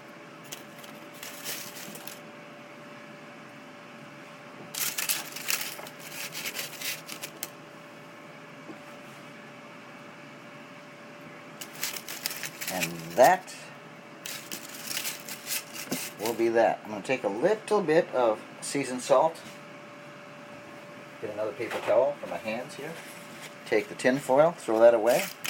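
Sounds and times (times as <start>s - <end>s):
faint steady hum: 0.0s - 25.4s
homemade steak fries tossed into olive oil: 0.5s - 2.2s, 4.8s - 7.5s, 11.6s - 13.4s, 14.3s - 16.4s
speech: 12.8s - 13.6s, 16.2s - 19.5s, 21.2s - 23.1s, 23.7s - 25.4s.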